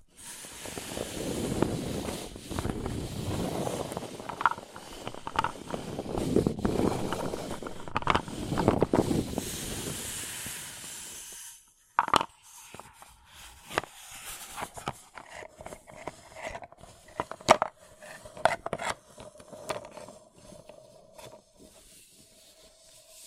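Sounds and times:
paper cup crinkling and rustling: 0.7 - 9.4, 12.0 - 21.4.

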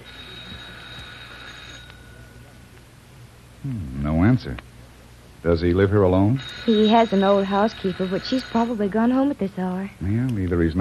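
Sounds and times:
doorbell ringing: 0.0 - 2.4, 6.3 - 9.1
speech: 3.6 - 4.7, 5.4 - 10.8.

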